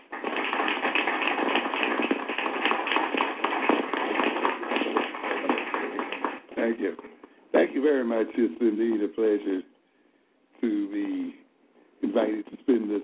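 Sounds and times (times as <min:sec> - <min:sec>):
audience applause welcoming a speaker: 0:00.0 - 0:07.0
speech: 0:06.7 - 0:07.1, 0:07.8 - 0:09.7, 0:10.6 - 0:11.4, 0:12.1 - 0:13.0.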